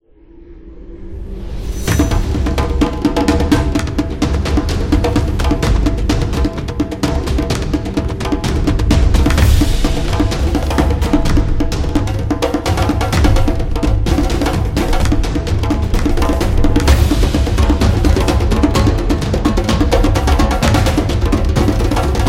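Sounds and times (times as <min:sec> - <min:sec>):
African drums: 0:01.8 - 0:22.2.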